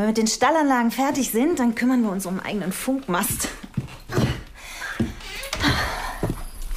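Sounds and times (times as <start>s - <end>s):
speech: 0.0s - 3.6s
faint breathing: 4.4s - 6.7s
house door opening and closing: 5.0s - 6.1s.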